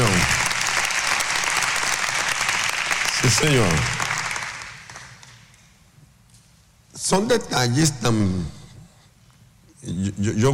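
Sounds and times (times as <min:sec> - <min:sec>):
crowd applauding: 0:00.0 - 0:05.4
speech: 0:03.2 - 0:04.0, 0:07.1 - 0:08.6, 0:09.8 - 0:10.5.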